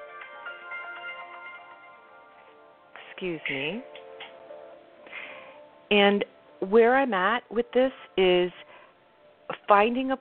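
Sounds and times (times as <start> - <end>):
cell phone ringing with a melodic electronic tune: 0.0 - 2.6
speech: 3.2 - 4.0, 5.9 - 8.6, 9.7 - 10.1.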